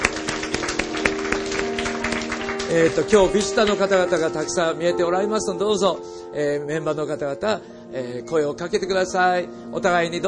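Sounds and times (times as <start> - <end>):
audience applause: 0.0 - 4.5
speech: 2.7 - 10.2.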